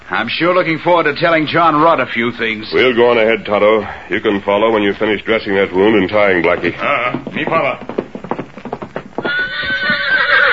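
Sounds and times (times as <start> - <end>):
speech: 0.2 - 7.9
horse hooves clip-clopping: 4.2 - 10.5
horse whinnying: 9.2 - 10.5.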